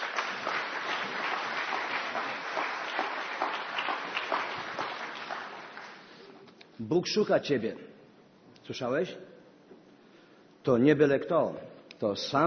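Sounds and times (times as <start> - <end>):
audience applause welcoming the preacher: 0.0 - 6.4
speech: 6.8 - 7.9, 8.7 - 9.3, 10.6 - 12.4.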